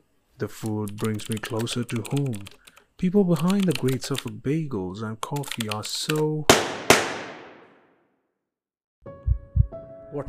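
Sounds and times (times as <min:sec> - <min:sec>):
speech: 0:00.4 - 0:06.8
gunshot: 0:06.5 - 0:07.9.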